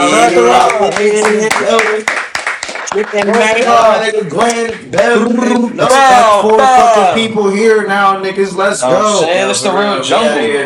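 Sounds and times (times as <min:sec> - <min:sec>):
speech: 0:00.0 - 0:02.2, 0:02.9 - 0:10.6
hand clapping: 0:00.4 - 0:05.2.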